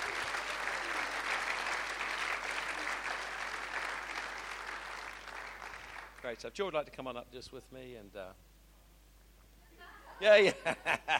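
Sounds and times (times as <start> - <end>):
audience clapping: 0.0 - 6.4
speech: 6.3 - 8.5, 10.2 - 11.1
laughter: 9.8 - 11.1.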